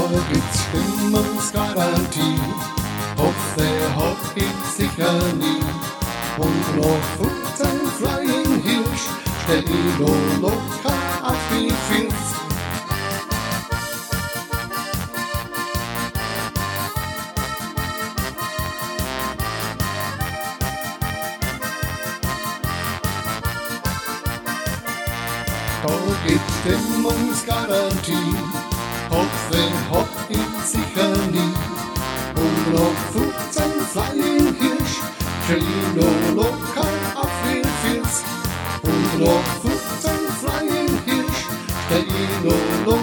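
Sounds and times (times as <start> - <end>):
polka music: 0.0 - 43.0.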